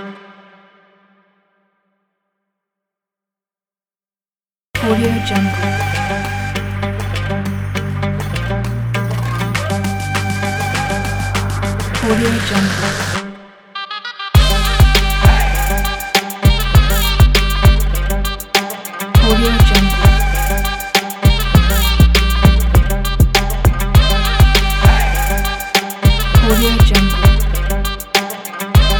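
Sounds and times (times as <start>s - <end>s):
dynamic eastern trap beat: 4.8s - 13.2s, 14.4s - 28.9s.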